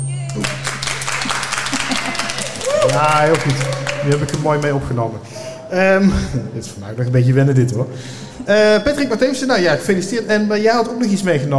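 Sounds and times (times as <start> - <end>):
audience applause: 0.2 - 5.2
speech: 0.4 - 0.7, 2.8 - 11.5
laughter: 0.4 - 6.6.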